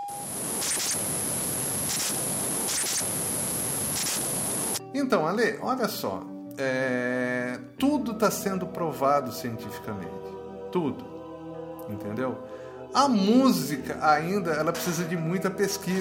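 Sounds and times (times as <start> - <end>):
speech: 0.1 - 3.3, 4.9 - 11.1, 11.9 - 16.0
harsh static with rhythmic surges of sonified diseased cell: 0.1 - 4.8
steady mid-pitched tone of sonified healthy cell: 0.1 - 4.8.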